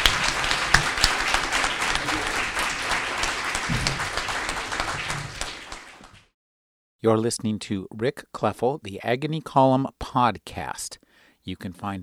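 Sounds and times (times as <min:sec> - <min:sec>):
audience round of applause: 0:00.0 - 0:06.3
speech: 0:07.0 - 0:12.0.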